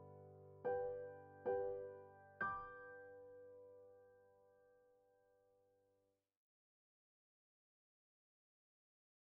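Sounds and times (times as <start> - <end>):
piano part: 0.0 - 4.7.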